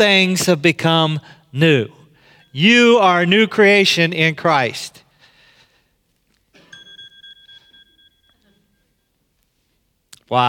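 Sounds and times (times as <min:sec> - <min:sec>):
speech: 0:00.0 - 0:05.0, 0:10.3 - 0:10.4
quiet noise: 0:00.0 - 0:10.4
mobile phone ringing: 0:06.7 - 0:08.8.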